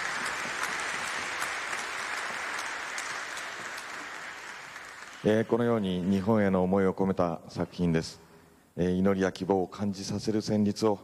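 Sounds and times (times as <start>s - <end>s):
audience applause: 0.0s - 5.9s
speech: 5.2s - 8.2s, 8.8s - 11.0s.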